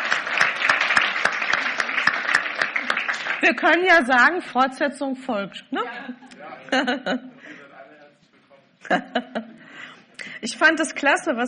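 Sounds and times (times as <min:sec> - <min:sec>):
audience applause: 0:00.0 - 0:03.9
speech: 0:03.4 - 0:07.3, 0:08.9 - 0:09.5, 0:10.4 - 0:11.4
laughter: 0:05.8 - 0:07.7, 0:08.8 - 0:09.8.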